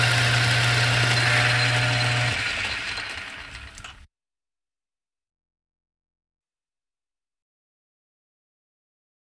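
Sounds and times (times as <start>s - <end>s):
machinery trucks moving: 0.2s - 4.1s.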